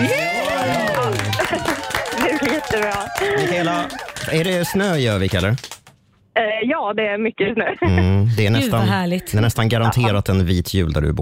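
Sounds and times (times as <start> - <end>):
laughter: 0.0 - 5.2, 7.5 - 8.8, 9.6 - 10.3
applause sound effect: 0.0 - 6.0
speech: 2.7 - 5.8, 6.4 - 11.2.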